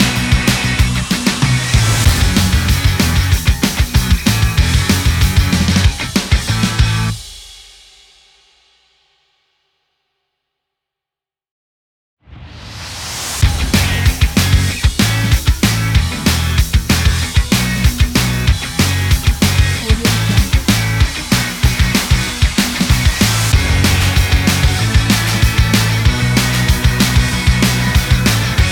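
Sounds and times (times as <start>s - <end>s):
energetic action indie sport rock: 0.0s - 7.2s, 13.4s - 28.7s.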